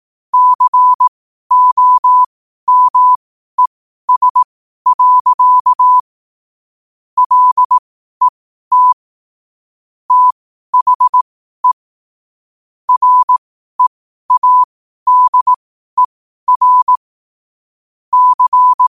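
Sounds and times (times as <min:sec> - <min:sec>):
morse code at 5 wpm: 0:00.4 - 0:03.2, 0:04.1 - 0:06.0, 0:07.2 - 0:09.0, 0:10.1 - 0:11.8, 0:12.9 - 0:17.0, 0:18.1 - 0:18.9.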